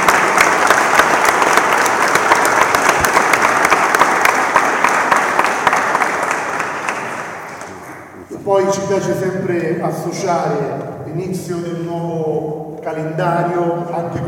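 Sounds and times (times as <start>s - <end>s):
crowd applauding: 0.0s - 8.2s
speech: 8.7s - 14.2s.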